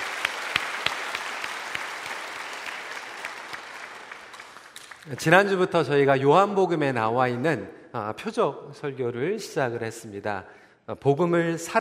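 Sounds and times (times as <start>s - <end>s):
audience applause: 0.0s - 5.2s
speech: 5.0s - 11.8s.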